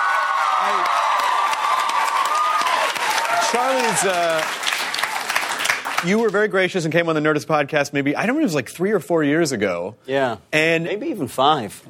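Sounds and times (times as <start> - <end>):
studio audience applauding a guest's entrance: 0.0 - 6.7
speech: 3.5 - 4.6, 6.0 - 11.8.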